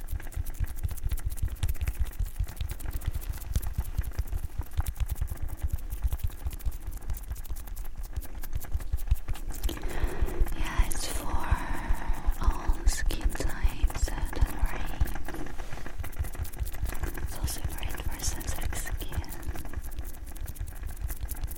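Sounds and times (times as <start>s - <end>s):
hands rubbing oil into facial skin during a pampering session: 0.0s - 21.5s.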